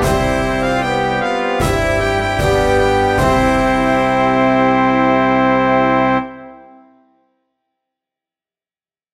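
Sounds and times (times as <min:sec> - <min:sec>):
national anthem on piano: 0:00.0 - 0:06.8.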